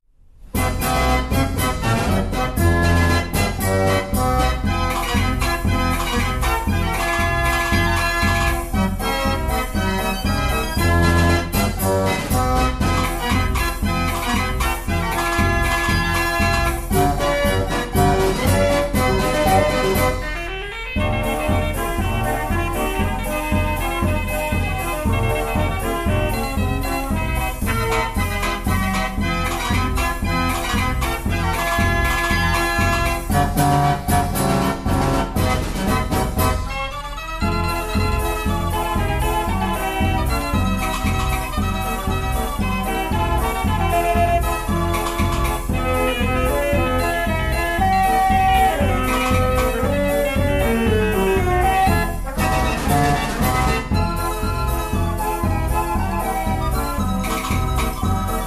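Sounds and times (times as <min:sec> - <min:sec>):
barrel organ playing paso doble: 0:00.5 - 0:58.4.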